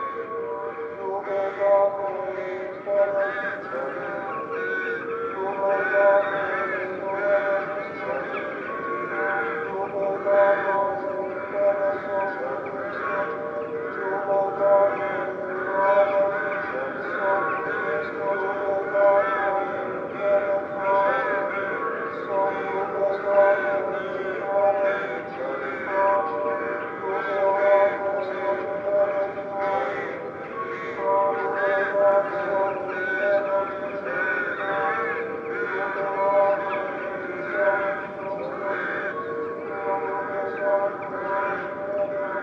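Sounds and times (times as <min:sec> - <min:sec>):
rooks and jackdaws cawing while gathering to roost on the marshes: 0:00.0 - 0:42.4.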